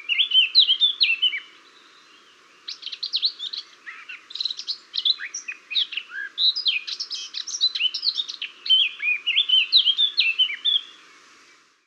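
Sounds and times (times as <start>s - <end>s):
Eurasian blackcap song of fluty and scratchy warbles: 0.0s - 11.8s.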